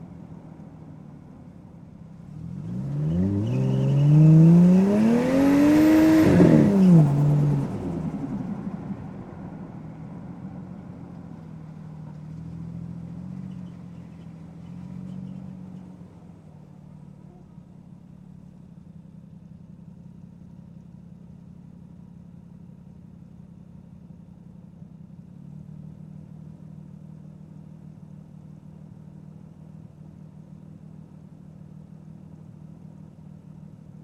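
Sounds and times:
Toyota Chaser Mark 2 engine: 2.2s - 9.2s
Toyota Chaser Mark 2 tyres skidding: 2.6s - 8.0s.

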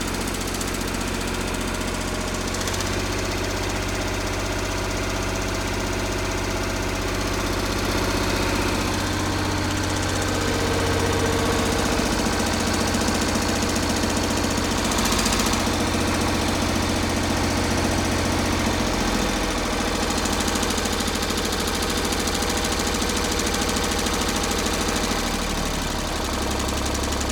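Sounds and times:
1962 Eicher Tiger II tractor engine exhaust idling and revving: 0.0s - 27.2s.

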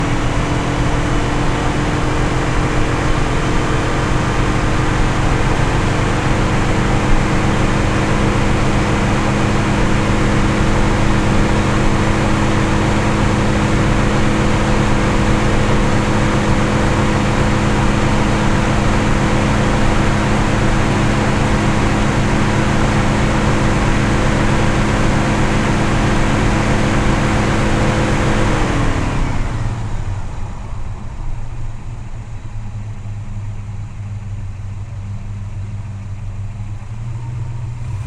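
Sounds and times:
1967 Pontiac GTO engine at steady RPMs onboard while driving: 0.0s - 38.0s.

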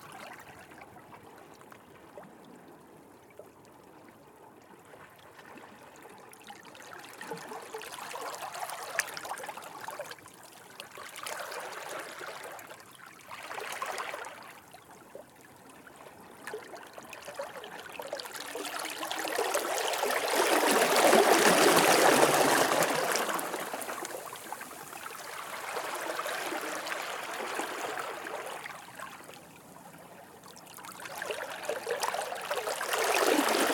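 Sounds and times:
very close small ocean waves flowing between rocks in Brittany: 6.7s - 14.7s, 15.7s - 33.7s.

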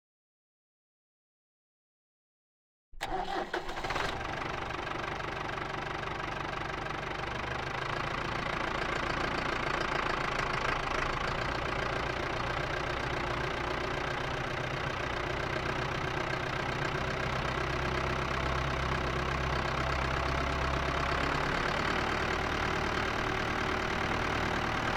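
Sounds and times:
1979 Ford 7700 tractor engine driving, onboard: 3.0s - 24.9s.

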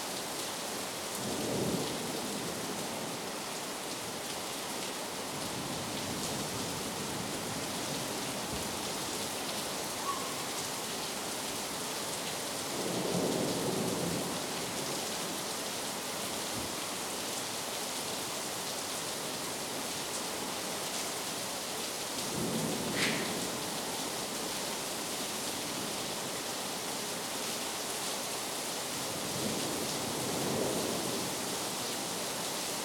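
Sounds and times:
heavy rain: 0.0s - 32.8s.

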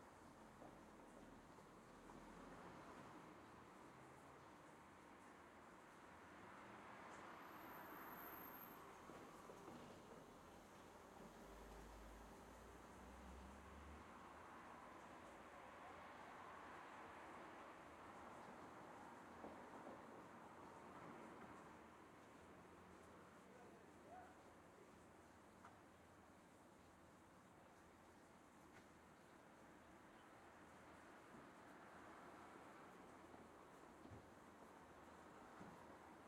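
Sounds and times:
light traffic in a suburb on a quiet afternoon: 0.0s - 36.2s.

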